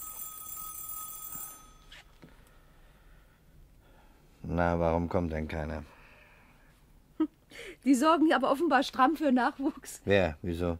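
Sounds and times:
doorbell ringing: 0:00.0 - 0:02.1
speech: 0:04.5 - 0:06.0, 0:07.2 - 0:10.7.

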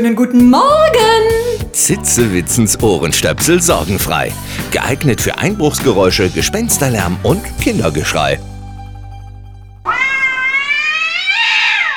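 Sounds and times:
speech: 0:00.0 - 0:01.2, 0:01.8 - 0:08.5
cat meowing: 0:09.8 - 0:11.9.

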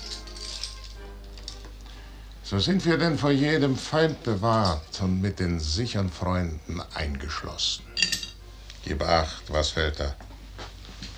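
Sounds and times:
bunch of keys jangling: 0:00.0 - 0:01.8
low steady hum: 0:00.0 - 0:11.1
speech: 0:02.5 - 0:08.0, 0:08.8 - 0:10.3.

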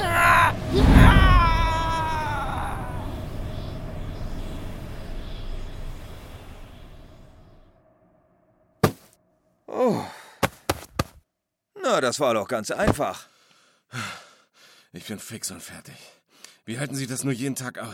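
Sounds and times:
ghost's loud scream being sucked into crystal: 0:00.0 - 0:03.3
speech: 0:00.7 - 0:01.0, 0:12.0 - 0:13.3, 0:13.9 - 0:14.2, 0:14.9 - 0:17.9.

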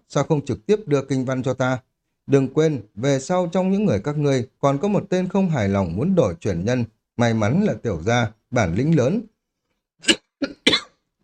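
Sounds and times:
speech: 0:00.1 - 0:09.3, 0:10.0 - 0:10.6
coughing: 0:10.0 - 0:11.0.

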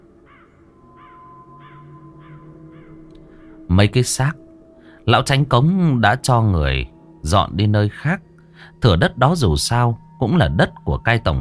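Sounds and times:
flock of crows cawing on a kapok tree: 0:00.2 - 0:03.7
speech: 0:03.7 - 0:04.4, 0:05.1 - 0:11.3.

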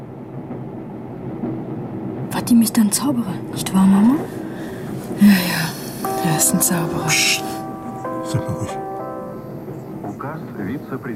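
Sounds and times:
moving refugee train wheels clacking on rails: 0:00.0 - 0:11.1
speech: 0:02.5 - 0:04.4, 0:05.2 - 0:07.6, 0:08.3 - 0:08.9, 0:10.8 - 0:11.1
faint tonal hum: 0:03.6 - 0:11.1.

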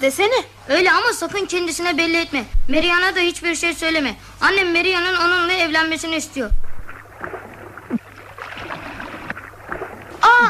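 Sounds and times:
speech: 0:00.0 - 0:06.7
someone swimming and splashing in a river: 0:06.5 - 0:10.4.

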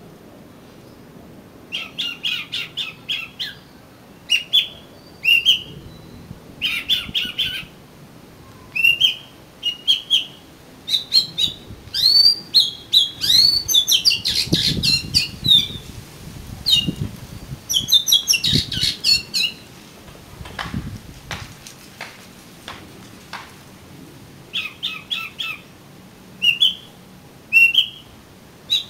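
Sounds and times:
Oriental magpie-robin song: 0:01.7 - 0:07.7, 0:08.5 - 0:15.9, 0:16.6 - 0:19.7, 0:24.5 - 0:25.7, 0:26.4 - 0:26.9, 0:27.5 - 0:28.1, 0:28.7 - 0:28.8.

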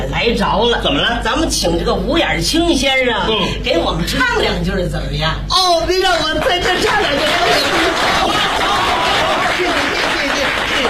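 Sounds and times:
speech: 0:00.1 - 0:09.0
audience applause: 0:06.6 - 0:10.8.

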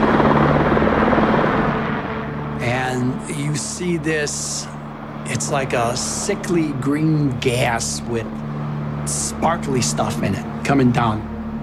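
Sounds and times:
low-flying green helicopter hovering over a yard: 0:00.0 - 0:11.6
speech: 0:03.2 - 0:11.3.

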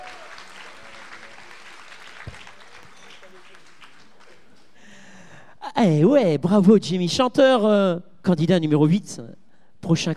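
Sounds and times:
faint audience applause for a singer at a tribute evening: 0:00.0 - 0:04.8
speech: 0:05.8 - 0:10.1.

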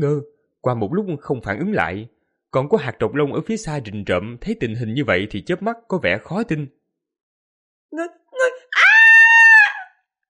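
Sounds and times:
speech: 0:00.0 - 0:06.8, 0:07.9 - 0:08.6
woman screaming: 0:08.4 - 0:10.0.

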